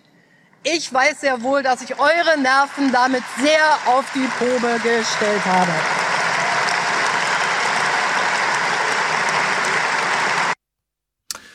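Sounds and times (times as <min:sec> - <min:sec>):
speech: 0:00.6 - 0:06.0
audience applause: 0:02.0 - 0:10.6.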